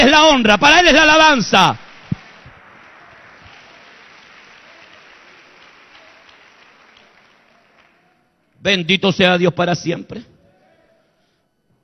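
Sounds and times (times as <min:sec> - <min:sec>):
speech: 0:00.0 - 0:01.9, 0:08.6 - 0:10.3
audience applause: 0:00.9 - 0:08.5.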